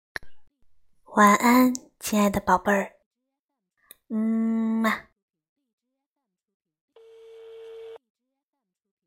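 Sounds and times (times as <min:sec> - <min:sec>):
speech: 0:01.2 - 0:03.0, 0:04.1 - 0:05.1
telephone busy tone: 0:07.0 - 0:08.0.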